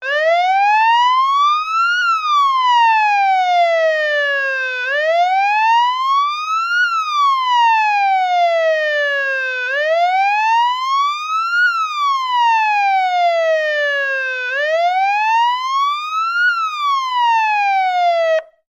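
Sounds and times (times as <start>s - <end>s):
police sirens: 0.0s - 18.6s.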